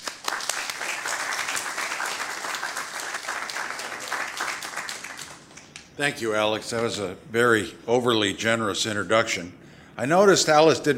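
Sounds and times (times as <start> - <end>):
audience applause welcoming Governor Bill Richardson onto the stage: 0.0 - 5.7
speech: 6.0 - 10.9.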